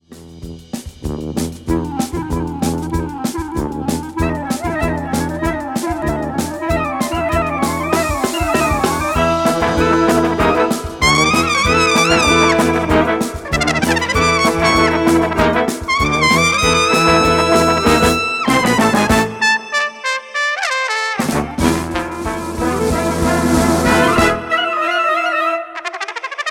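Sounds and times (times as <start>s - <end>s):
brass band playing: 0.1s - 26.4s.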